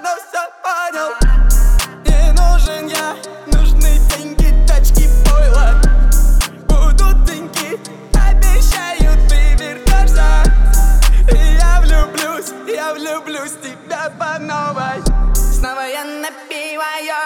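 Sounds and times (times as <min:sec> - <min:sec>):
37, 39 and 41 Hz low bass tone: 0:01.2 - 0:02.7, 0:03.5 - 0:07.3, 0:08.2 - 0:12.0, 0:15.1 - 0:15.6.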